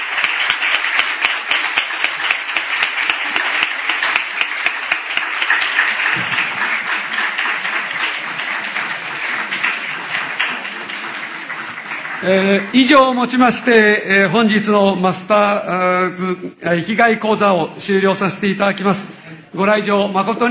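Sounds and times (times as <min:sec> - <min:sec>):
audience applause: 0:00.0 - 0:13.4
speech: 0:12.3 - 0:20.4.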